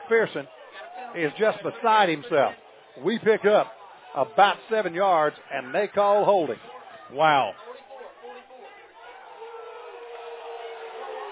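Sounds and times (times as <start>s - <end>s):
stadium crowd of Vikings fans reacting unhappily to a call: 0.0s - 11.3s
speech: 0.1s - 7.7s.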